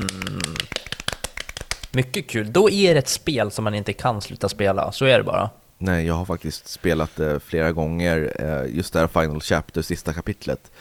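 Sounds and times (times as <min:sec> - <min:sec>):
small round of applause: 0:00.0 - 0:02.0
speech: 0:02.0 - 0:10.7.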